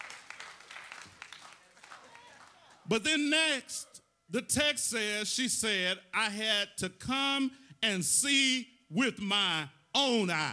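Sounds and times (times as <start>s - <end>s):
church congregation hand clapping in praise during a service: 0.0s - 2.8s
speech: 2.9s - 10.5s.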